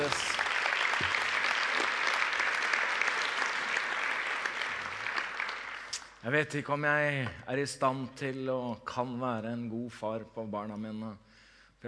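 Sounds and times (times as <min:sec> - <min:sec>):
audience applause: 0:00.0 - 0:06.0
speech: 0:06.3 - 0:11.8.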